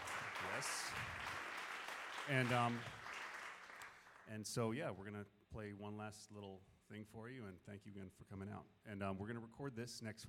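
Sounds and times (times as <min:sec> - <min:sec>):
audience applause: 0:00.0 - 0:04.2
speech: 0:00.6 - 0:01.4, 0:02.3 - 0:03.0, 0:04.3 - 0:10.2.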